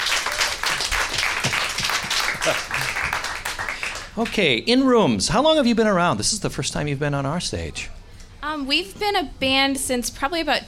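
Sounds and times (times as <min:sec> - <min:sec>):
crowd applause for the band: 0:00.0 - 0:04.4
speech: 0:02.4 - 0:02.8, 0:04.2 - 0:10.6.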